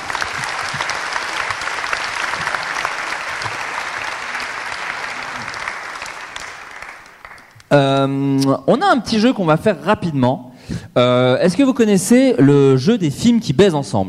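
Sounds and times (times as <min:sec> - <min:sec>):
audience applause: 0:00.0 - 0:07.7
speech: 0:07.7 - 0:14.0.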